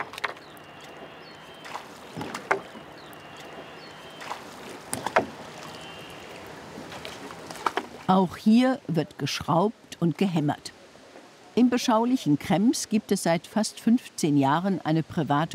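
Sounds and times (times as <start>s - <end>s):
oars rowing a flat-bottomed wooden boat Zille: 0.0s - 8.2s
steady low water wash: 0.0s - 15.5s
speech: 8.1s - 10.8s, 11.6s - 15.5s.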